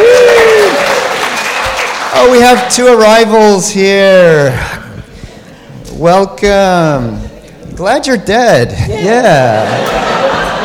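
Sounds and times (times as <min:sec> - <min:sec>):
studio audience applause: 0:00.0 - 0:02.8
speech: 0:02.2 - 0:04.8, 0:06.0 - 0:10.1
laughter: 0:08.7 - 0:10.6.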